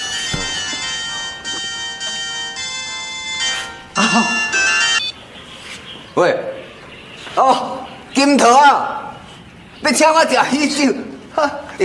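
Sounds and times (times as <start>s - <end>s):
mobile phone ringing with an electronic melodic ringtone: 0.0s - 5.1s
speech: 4.0s - 4.4s, 6.2s - 6.5s, 7.4s - 9.0s, 9.8s - 11.8s.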